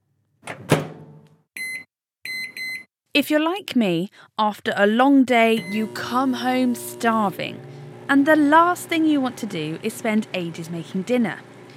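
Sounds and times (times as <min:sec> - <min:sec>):
microwave oven door closing: 0:00.4 - 0:01.2
speech: 0:03.2 - 0:11.5.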